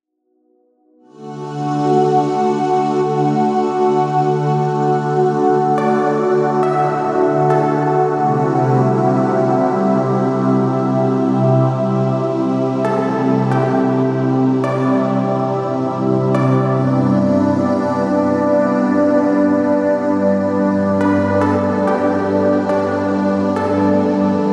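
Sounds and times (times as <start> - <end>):
calming atmospheric sounds for dog sleep: 0.5 - 24.5.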